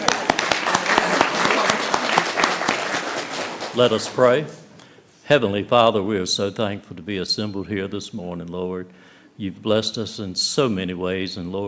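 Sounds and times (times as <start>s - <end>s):
audience clapping: 0.0s - 4.6s
speech: 3.8s - 4.6s, 5.3s - 11.6s.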